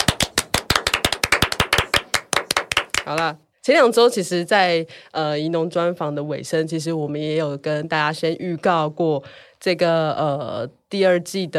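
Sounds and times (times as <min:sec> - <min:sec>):
hand clapping: 0:00.0 - 0:03.3
speech: 0:03.1 - 0:11.5.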